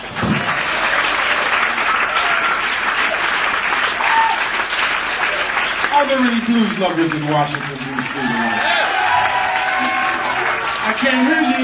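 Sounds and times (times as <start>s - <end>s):
audience applause welcoming a blues band onstage in Washington, D.C.: 0.0s - 11.6s
speech: 6.0s - 9.0s, 11.0s - 11.6s.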